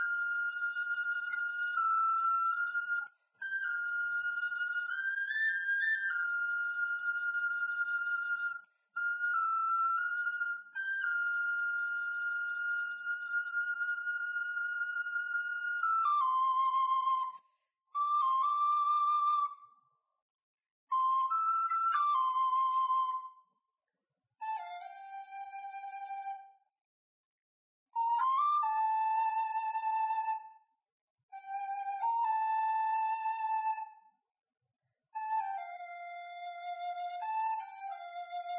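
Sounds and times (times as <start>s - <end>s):
flute playing a song: 0.0s - 17.4s, 18.0s - 19.7s, 20.9s - 23.5s, 24.4s - 26.6s, 28.0s - 30.6s, 31.4s - 34.0s, 35.2s - 38.5s.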